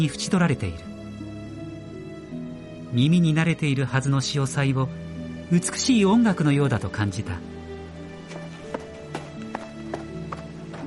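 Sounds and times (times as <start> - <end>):
speech: 0.0 - 0.9, 2.9 - 7.6
running footsteps: 8.2 - 10.8.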